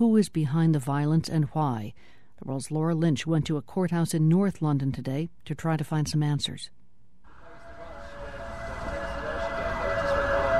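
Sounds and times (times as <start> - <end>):
speech: 0.0 - 6.8
sirens of police vans outside a magistrates' court in Islington, North London: 7.3 - 10.5
traffic rumble: 7.3 - 10.5.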